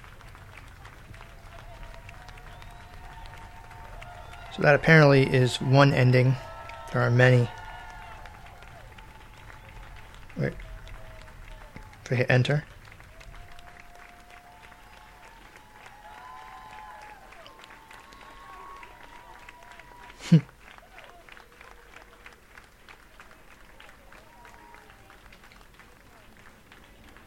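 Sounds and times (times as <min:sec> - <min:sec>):
crowd clapping and cheering: 0:00.0 - 0:27.2
speech: 0:04.6 - 0:07.6, 0:12.1 - 0:12.8.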